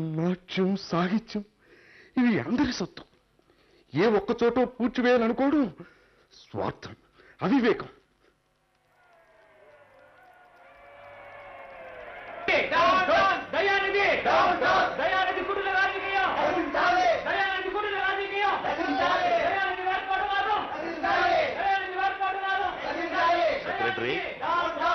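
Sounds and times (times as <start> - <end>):
speech: 0.0 - 1.5, 2.2 - 3.1, 3.9 - 8.0
crowd of people shouting outside: 8.7 - 24.9.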